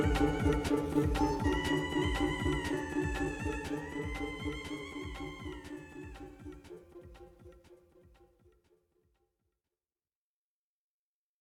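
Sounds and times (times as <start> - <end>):
instrumental music: 0.0 - 8.2.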